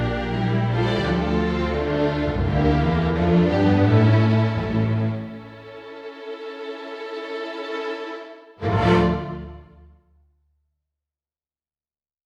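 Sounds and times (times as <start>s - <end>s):
orchestral music: 0.0s - 10.0s.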